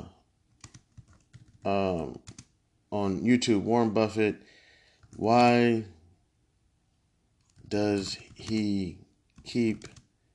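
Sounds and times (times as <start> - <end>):
computer keyboard typing a search: 0.5 - 2.6, 7.4 - 10.1
speech: 1.6 - 2.4, 3.0 - 6.0, 7.7 - 10.0.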